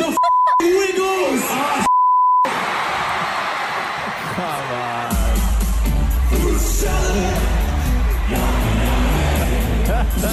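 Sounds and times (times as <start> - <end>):
large concert crowd cheering: 0.9 - 10.3
short steady beep: 1.9 - 2.5
laughter: 2.5 - 4.7, 8.2 - 10.3.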